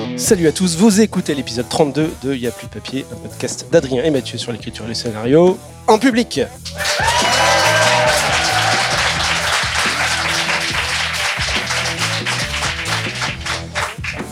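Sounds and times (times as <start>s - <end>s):
speech: 0.2s - 7.1s
canned laughter and applause soundtrack: 6.6s - 14.2s.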